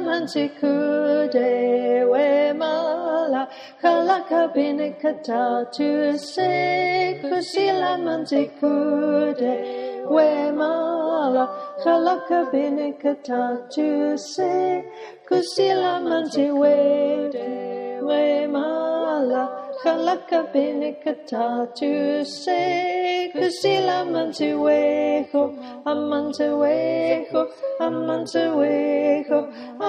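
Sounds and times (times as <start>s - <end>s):
alto choir singing: 0.0s - 29.8s.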